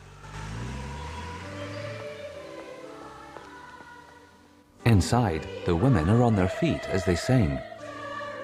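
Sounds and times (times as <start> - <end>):
car engine accelerating and pulling away: 0.0 - 4.3
speech: 4.9 - 7.7.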